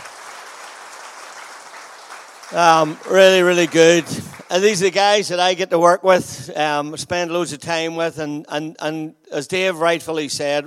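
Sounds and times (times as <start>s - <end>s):
audience round of applause: 0.0s - 5.0s
speech: 2.5s - 10.6s.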